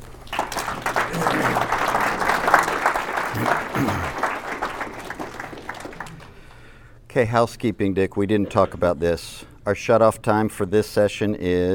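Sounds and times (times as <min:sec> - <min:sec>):
audience applauding to welcome a guest at a live session: 0:00.0 - 0:06.6
speech: 0:07.2 - 0:11.7.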